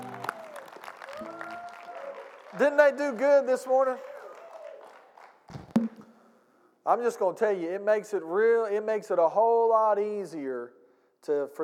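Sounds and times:
audience applause: 0.0 - 5.6
speech: 2.5 - 4.1, 6.9 - 11.6.

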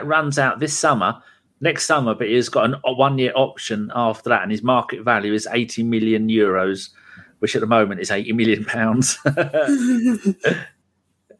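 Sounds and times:
speech: 0.0 - 10.7
person yawning and laughing: 9.4 - 10.7.

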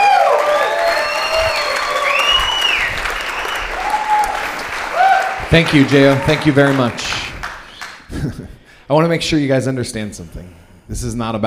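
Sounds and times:
audience applauding: 0.0 - 8.6
speech: 5.5 - 7.1, 8.9 - 11.4
laughter: 5.6 - 8.8.

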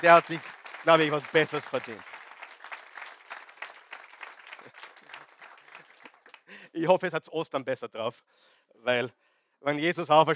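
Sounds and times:
speech: 0.0 - 2.1, 6.8 - 10.3
audience applause: 0.0 - 6.6.

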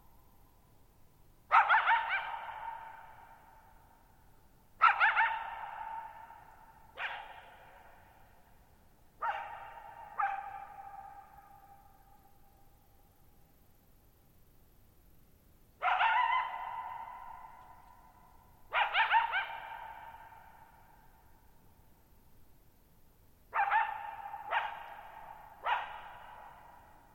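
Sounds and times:
coyote barking: 1.5 - 3.4, 4.8 - 8.1, 9.2 - 11.9, 15.8 - 18.1, 18.7 - 20.9, 23.5 - 27.0.

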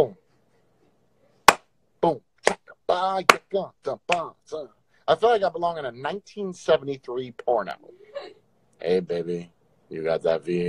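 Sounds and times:
speech: 0.0 - 0.2, 2.0 - 10.6
hand clap: 1.5 - 1.7.

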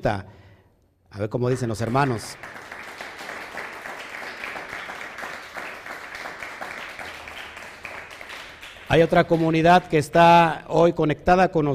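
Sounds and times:
speech: 0.0 - 0.4, 1.1 - 2.6, 8.9 - 11.7
applause: 1.4 - 10.3.

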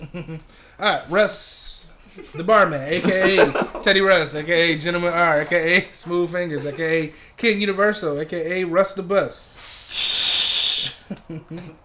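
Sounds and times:
laughter: 0.0 - 8.8, 10.6 - 11.8
speech: 0.1 - 10.3, 11.1 - 11.8
high-pitched hiss: 9.3 - 11.2.

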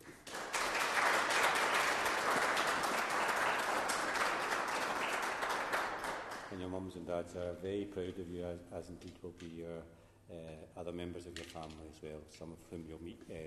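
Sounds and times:
audience applauding: 0.0 - 6.6
speech: 6.6 - 13.4.

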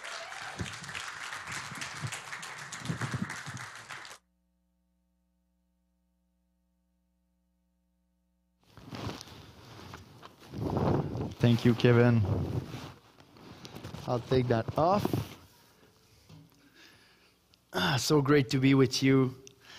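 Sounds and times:
Hope Ottawa church audience applause welcoming a speaker: 0.0 - 4.2
speech: 11.4 - 13.0, 14.1 - 15.3, 18.0 - 19.4.

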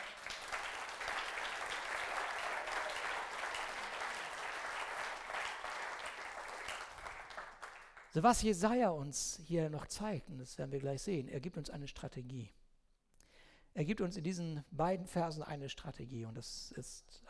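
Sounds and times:
audience applause: 0.0 - 8.1
speech: 8.2 - 12.6, 13.8 - 17.2.

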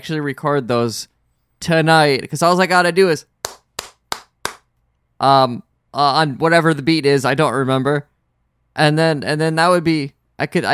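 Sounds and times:
speech: 0.0 - 3.3, 5.2 - 8.1, 8.8 - 10.7
hand claps: 3.4 - 4.7.

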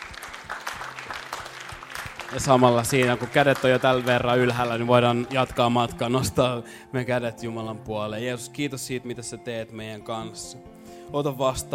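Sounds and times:
congregation applauding during a worship service: 0.0 - 6.4
speech: 2.3 - 11.7.

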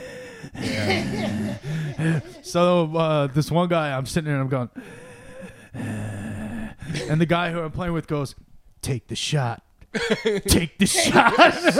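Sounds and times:
person imitating heavy stoned breathing: 0.0 - 2.5, 4.8 - 7.1
laughter: 0.6 - 2.6, 10.0 - 11.7
speech: 0.8 - 5.0, 7.1 - 11.7.

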